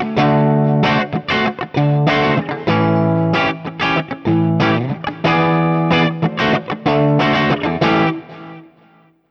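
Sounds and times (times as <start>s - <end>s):
Guild X92 Citron guitar playing clean 7th chords: 0.0s - 9.2s.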